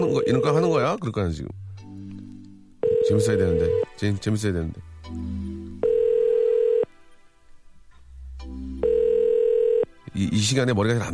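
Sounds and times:
unanswered phone call ringback tone: 0.0s - 0.8s, 2.8s - 3.8s, 5.8s - 6.9s, 8.8s - 9.9s
speech: 0.0s - 1.7s, 3.1s - 5.4s, 10.2s - 11.1s.

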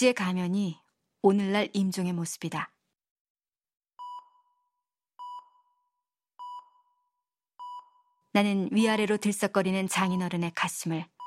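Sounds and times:
speech: 0.0s - 2.7s, 8.4s - 11.1s
hospital monitoring machines beeping: 4.0s - 4.5s, 5.2s - 5.8s, 6.4s - 7.0s, 7.6s - 8.1s.

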